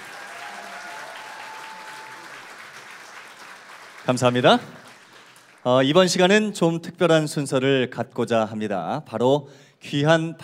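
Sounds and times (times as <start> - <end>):
audience applause: 0.0 - 5.9
speech: 4.0 - 4.8, 5.6 - 10.4.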